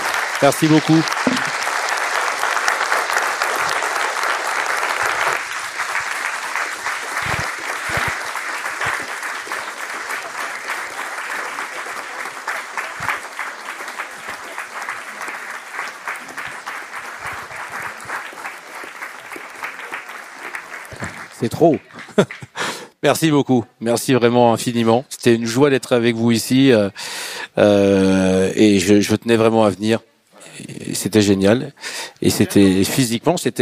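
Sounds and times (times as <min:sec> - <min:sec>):
audience applause: 0:00.0 - 0:22.8
speech: 0:00.4 - 0:01.4, 0:21.4 - 0:30.1, 0:31.0 - 0:33.6.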